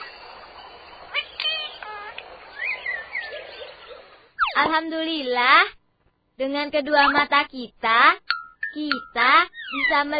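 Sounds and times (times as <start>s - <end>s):
birds chirping outdoors: 0.0s - 5.3s, 8.5s - 10.1s
speech: 4.6s - 5.8s, 6.4s - 10.1s.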